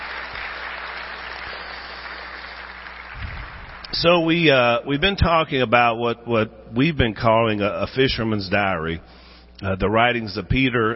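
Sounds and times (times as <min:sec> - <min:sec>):
audience applause: 0:00.0 - 0:04.0
speech: 0:03.9 - 0:10.9.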